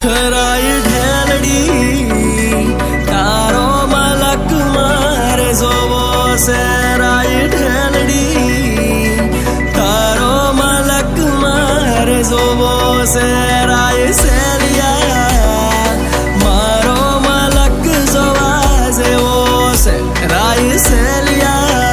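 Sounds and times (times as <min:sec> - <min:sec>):
Gujarati ringtone: 0:00.1 - 0:21.9.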